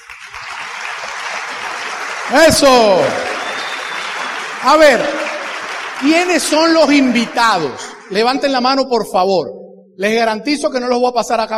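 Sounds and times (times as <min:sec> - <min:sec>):
audience applause: 0:00.0 - 0:08.7
speech: 0:02.3 - 0:03.3, 0:04.6 - 0:05.2, 0:06.0 - 0:11.5.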